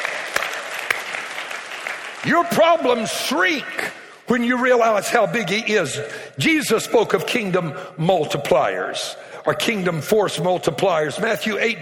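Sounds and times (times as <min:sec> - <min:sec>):
audience applause: 0:00.0 - 0:03.0
speech: 0:02.2 - 0:11.8.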